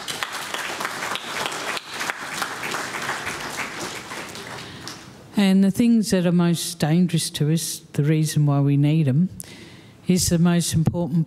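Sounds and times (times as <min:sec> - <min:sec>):
audience applause: 0:00.0 - 0:05.2
speech: 0:05.4 - 0:11.2.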